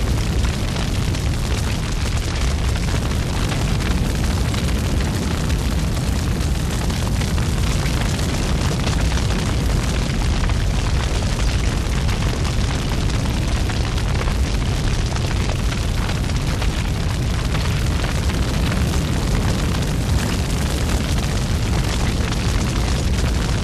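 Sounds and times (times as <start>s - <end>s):
big fire burning: 0.0s - 23.6s.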